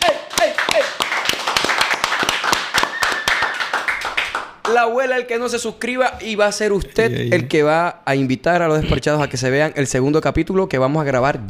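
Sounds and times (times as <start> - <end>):
loud farewell applause: 0.0 - 4.6
speech: 4.8 - 11.4.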